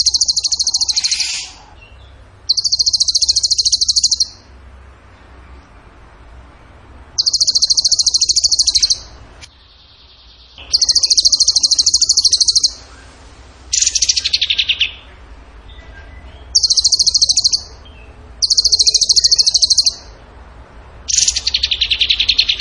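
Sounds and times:
bird trilling: 0.0 - 4.5, 7.2 - 9.2, 10.3 - 13.0, 13.7 - 15.1, 16.4 - 20.2, 21.1 - 22.6.

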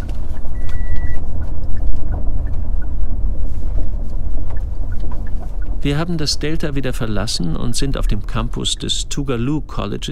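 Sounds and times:
road traffic of cars and trucks passing: 0.0 - 10.1
faint tonal beep: 0.3 - 1.3
speech: 5.8 - 10.1.

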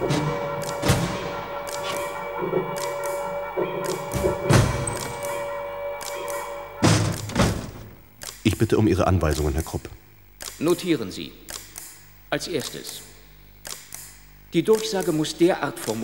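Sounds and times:
windows being shut with heavy thuds: 0.0 - 2.2, 3.9 - 5.4, 6.8 - 8.2
low hum: 0.0 - 10.3
speech: 8.6 - 10.0, 10.6 - 11.5, 12.3 - 13.1, 14.5 - 16.0.

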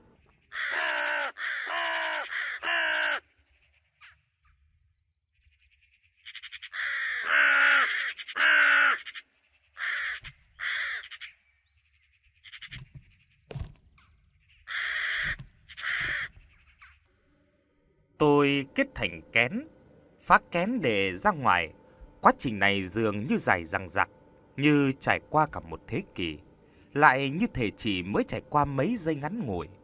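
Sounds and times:
unknown bird crying mournfully: 0.4 - 3.3, 6.3 - 11.6, 14.6 - 16.8
speech: 18.2 - 24.0, 24.6 - 29.8.

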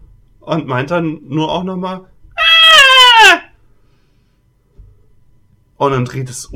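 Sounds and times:
speech: 0.5 - 2.1, 5.8 - 6.5
baby crying: 2.4 - 3.5.

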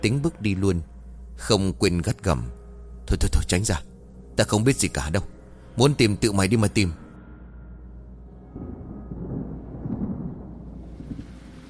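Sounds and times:
speech: 0.0 - 7.0
low rumbling thunder: 8.4 - 11.6
heavy rain pouring: 9.8 - 11.6.

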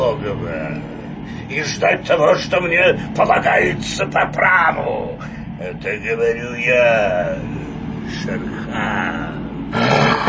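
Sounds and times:
speech: 0.2 - 10.1
tiger roaring in a cave: 9.7 - 10.2.

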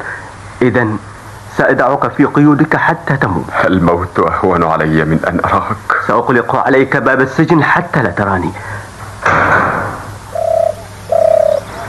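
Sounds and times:
speech: 0.0 - 9.4
dove cooing: 10.3 - 11.8.

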